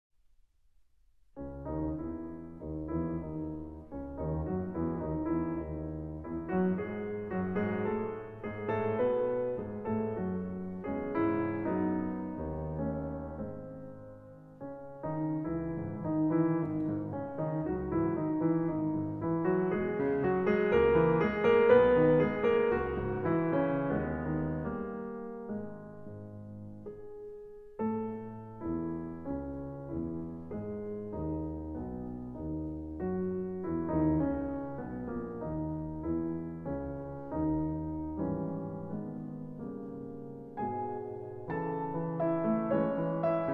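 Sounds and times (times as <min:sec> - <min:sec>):
intermezzo in C-sharp minor: 0:01.0 - 0:43.5.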